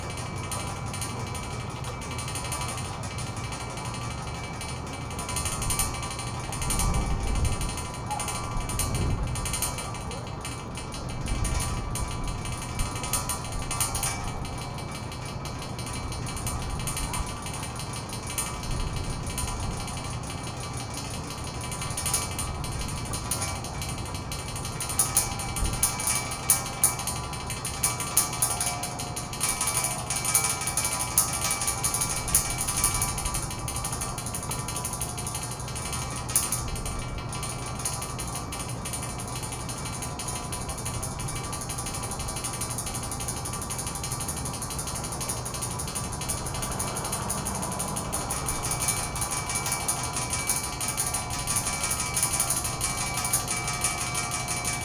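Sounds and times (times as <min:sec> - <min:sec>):
vibrating ghost sign sound: 0:00.0 - 0:54.8.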